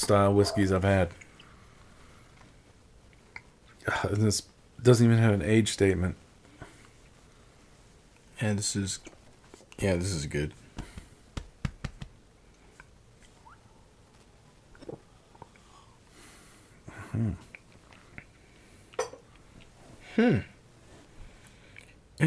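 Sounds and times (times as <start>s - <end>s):
speech: 0.1s - 1.3s, 3.9s - 6.2s, 8.4s - 9.2s, 9.8s - 10.6s, 17.1s - 17.4s, 20.2s - 20.5s
person hiccuping: 20.1s - 20.5s.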